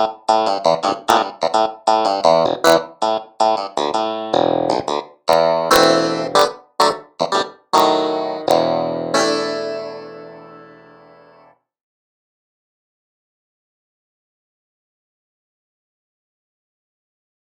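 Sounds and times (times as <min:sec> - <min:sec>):
clavinet: 0:00.0 - 0:11.5.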